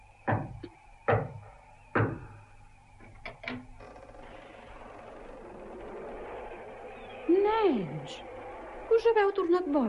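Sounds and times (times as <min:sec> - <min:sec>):
knocking on a door: 0:00.2 - 0:02.4
speech: 0:08.0 - 0:08.3, 0:09.0 - 0:09.8.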